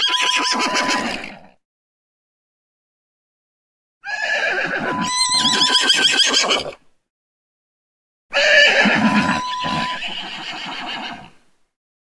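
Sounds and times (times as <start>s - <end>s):
horse neighing: 0.0s - 1.5s, 4.0s - 6.8s, 8.3s - 11.4s.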